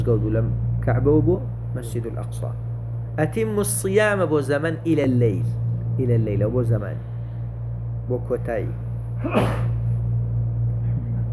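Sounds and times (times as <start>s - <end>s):
speech: 0.0s - 7.1s, 8.1s - 9.7s
constant low electrical hum: 0.0s - 11.3s
person sneezing during an Arabic grammar lesson: 9.2s - 9.9s.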